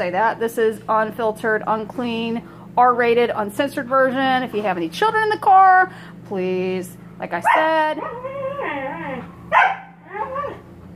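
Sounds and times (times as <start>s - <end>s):
speech: 0.0s - 8.4s
dog barking, yowling and whining: 7.5s - 10.8s.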